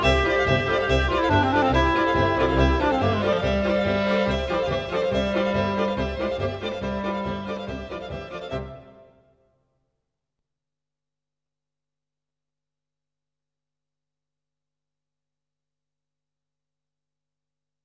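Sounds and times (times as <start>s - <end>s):
folk music: 0.0s - 9.2s.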